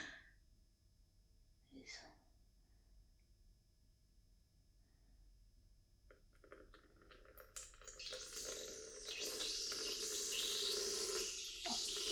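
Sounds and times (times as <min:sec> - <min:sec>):
person urinating indoors, binaural: 0:06.1 - 0:12.0.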